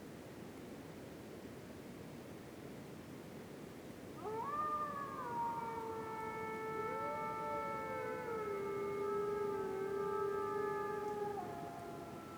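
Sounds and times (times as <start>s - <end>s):
gray wolves howling in a winter forest at night: 4.2s - 12.3s.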